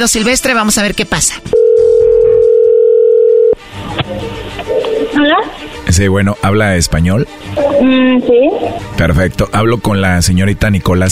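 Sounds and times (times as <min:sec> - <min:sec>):
speech: 0:00.0 - 0:02.0, 0:05.2 - 0:11.1
steady single-pitched telephone tone: 0:01.6 - 0:03.6.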